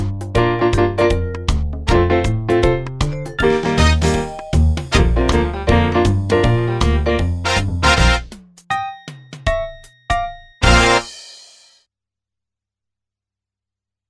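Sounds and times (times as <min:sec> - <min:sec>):
blues music: 0:00.0 - 0:11.2.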